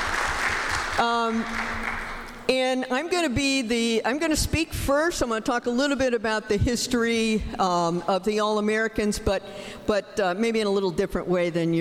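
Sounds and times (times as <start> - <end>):
audience applause at a panel event on women's baseball history: 0.0 - 2.3
speech: 1.0 - 11.7.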